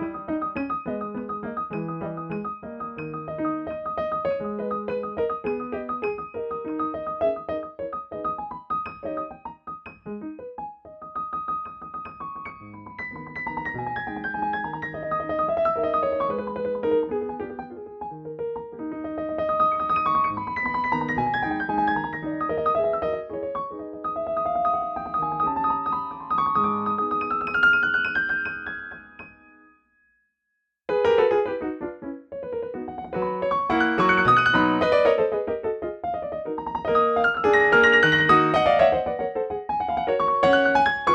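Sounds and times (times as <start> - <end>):
Steinway D concert grand piano: 0.0 - 29.8, 30.9 - 41.1.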